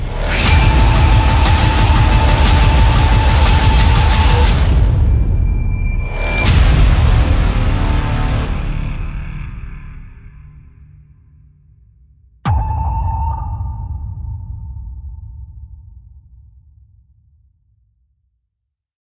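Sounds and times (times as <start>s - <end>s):
epic intense hybrid horror music: 0.0s - 11.4s, 12.5s - 16.0s.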